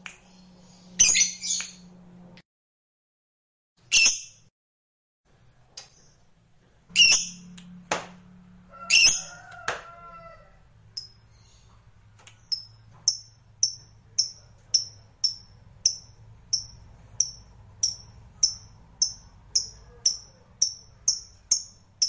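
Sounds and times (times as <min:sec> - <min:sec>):
low steady hum: 0:00.0 - 0:02.4, 0:05.3 - 0:22.0
lovebird harsh buzzy squawks: 0:08.8 - 0:09.3.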